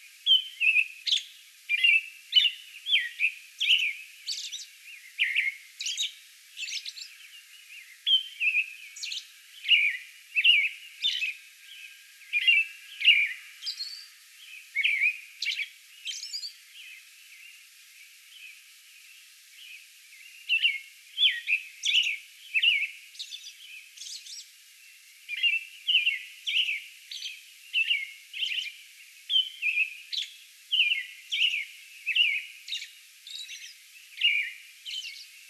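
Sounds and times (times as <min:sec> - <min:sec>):
American robin singing: 0:00.0 - 0:35.4.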